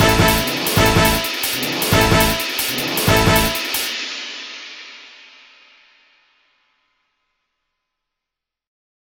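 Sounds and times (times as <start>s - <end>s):
piano: 0.0s - 3.8s
brass: 0.0s - 3.9s
strings: 0.0s - 3.9s.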